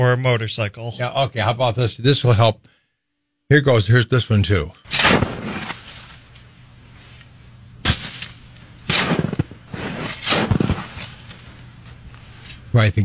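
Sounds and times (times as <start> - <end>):
speech: 0.0 - 2.7, 3.5 - 5.0, 12.8 - 13.0
shovel scraping through snow: 4.9 - 7.2, 7.8 - 12.7
quiet shuffling: 5.3 - 12.8.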